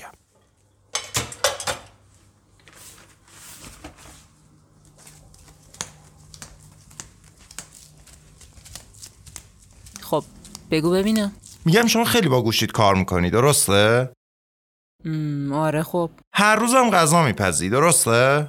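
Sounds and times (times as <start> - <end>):
dishes and cutlery clattering while being washed: 0.9 - 2.0
speech: 10.1 - 14.2, 15.0 - 18.4.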